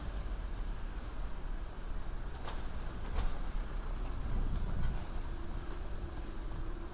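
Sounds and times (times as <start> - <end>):
London street traffic rumble on New Year's Eve: 0.1 - 6.7
sharp clicks and tones: 1.7 - 6.7.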